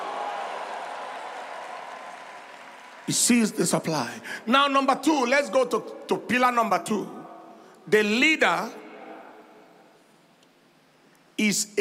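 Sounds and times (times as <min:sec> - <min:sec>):
audience shouting praise: 0:00.0 - 0:01.4
audience clapping: 0:00.0 - 0:04.0
speech: 0:03.1 - 0:07.2, 0:07.9 - 0:08.8, 0:11.4 - 0:11.7.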